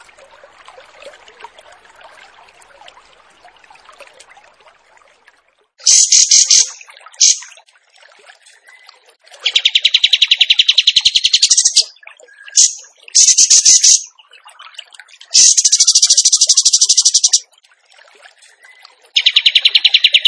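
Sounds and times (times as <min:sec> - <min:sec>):
bird song trills: 0:05.9 - 0:07.4, 0:09.5 - 0:11.9, 0:12.6 - 0:14.1, 0:15.4 - 0:17.4, 0:19.2 - 0:20.2.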